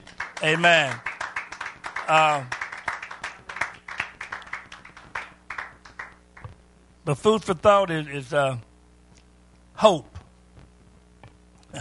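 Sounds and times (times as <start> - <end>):
audience hand clapping: 0.0 - 6.5
speech: 0.4 - 1.1, 2.1 - 2.6, 7.1 - 8.7, 9.8 - 10.1.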